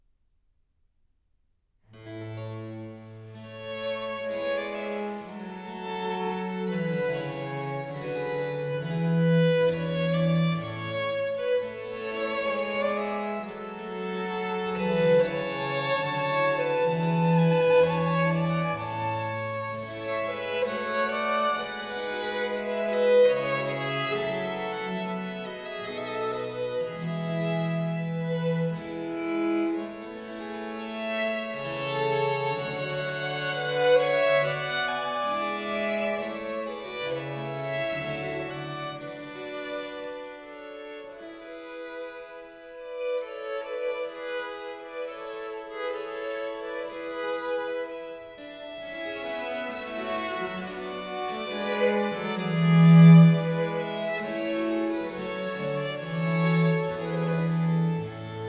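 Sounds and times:
trio sonata in G minor adagio: 0:03.0 - 0:58.4.

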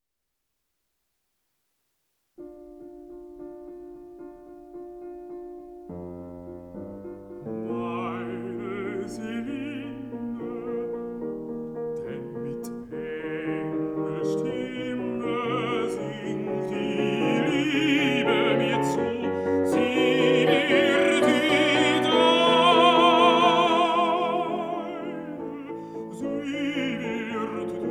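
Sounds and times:
piano: 0:02.4 - 0:27.8
person singing: 0:07.6 - 0:11.2, 0:12.0 - 0:27.8.

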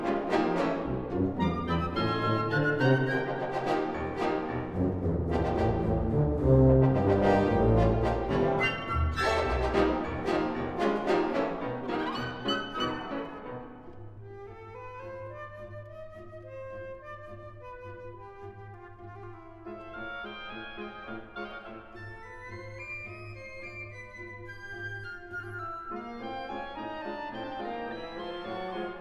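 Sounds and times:
orchestra playing etudes: 0:00.0 - 0:14.2, 0:19.6 - 0:23.8, 0:25.9 - 0:28.9.

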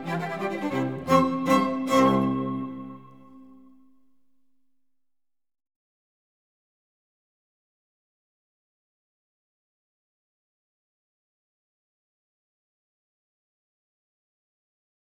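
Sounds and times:
quartet for flute, violin, viola and cello: 0:00.0 - 0:03.8.

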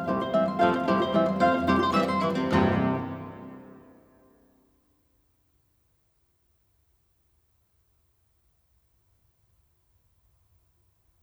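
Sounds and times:
piano waltz for four hands in C sharp major: 0:00.1 - 0:03.9.

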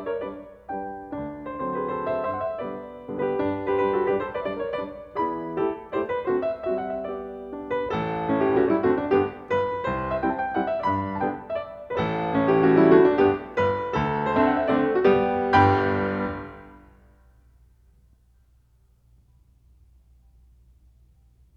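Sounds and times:
piano mazurka: 0:00.0 - 0:17.1.

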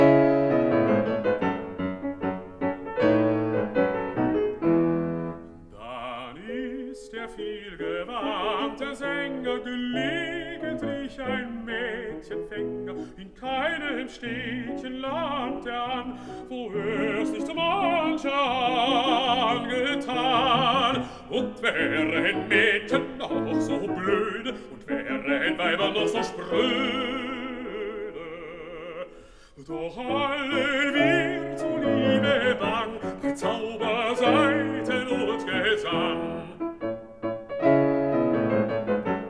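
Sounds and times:
piano: 0:00.0 - 0:39.2
person singing: 0:05.7 - 0:36.8.

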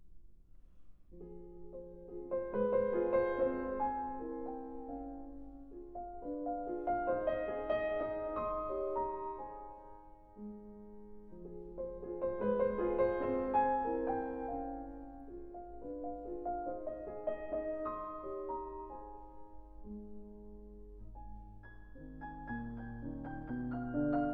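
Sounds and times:
piano piece: 0:00.0 - 0:24.3.

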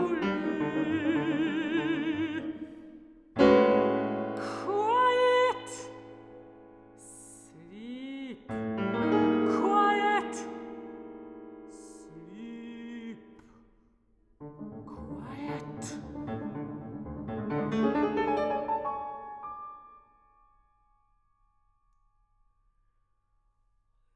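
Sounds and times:
mezzo-soprano singing a song cycle: 0:00.0 - 0:06.4, 0:07.0 - 0:11.0, 0:11.6 - 0:13.4, 0:14.7 - 0:16.9
piano: 0:00.0 - 0:13.6, 0:14.4 - 0:21.0.

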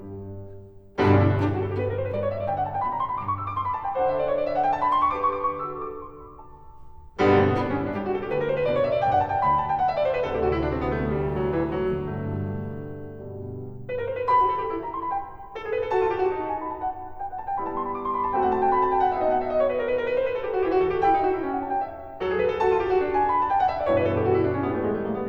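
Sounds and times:
cello: 0:00.0 - 0:25.2
piano: 0:00.0 - 0:25.2.

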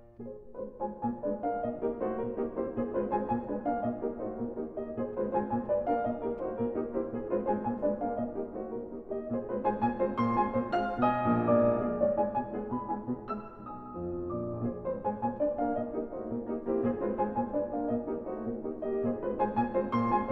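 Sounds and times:
piano piece: 0:00.0 - 0:20.3.

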